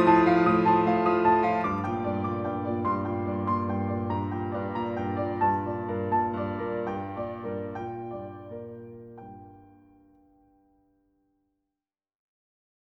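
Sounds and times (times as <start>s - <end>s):
solo piano: 0.0s - 10.2s.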